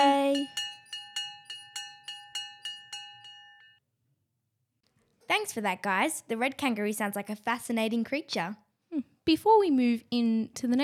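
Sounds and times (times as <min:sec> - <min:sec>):
bell ringing: 0:00.0 - 0:03.8
speech: 0:05.4 - 0:10.8.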